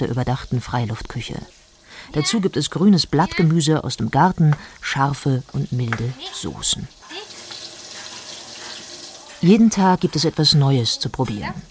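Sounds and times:
speech: 0:00.0 - 0:07.3, 0:09.4 - 0:11.7
washing dishes under running tap: 0:00.0 - 0:11.7.

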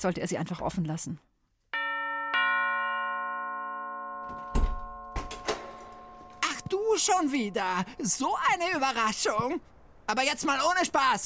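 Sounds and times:
speech: 0:00.0 - 0:01.3, 0:07.0 - 0:11.2
doorbell ringing: 0:01.8 - 0:08.2.

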